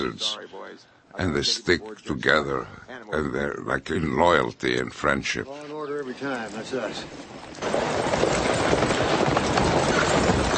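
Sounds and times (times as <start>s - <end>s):
speech: 0.0s - 8.4s
hooves of the team pulling a horse-drawn stagecoach: 6.4s - 10.5s.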